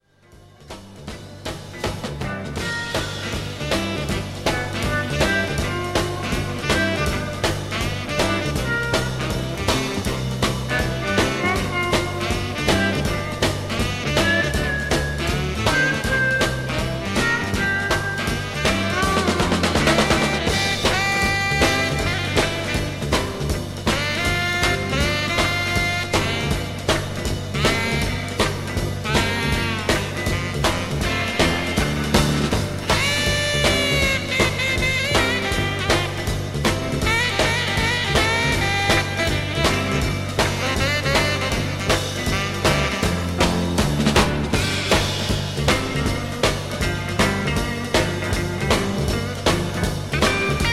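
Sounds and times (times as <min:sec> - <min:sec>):
soul drum groove: 0:00.0 - 0:50.7.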